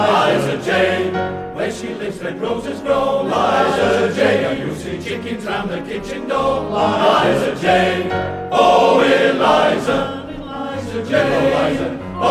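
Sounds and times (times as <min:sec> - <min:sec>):
male voice choir singing: 0:00.0 - 0:12.3.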